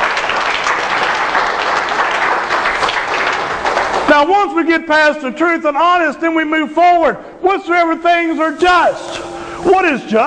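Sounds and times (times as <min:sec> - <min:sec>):
audience applause: 0:00.0 - 0:04.1
speech: 0:04.2 - 0:10.2.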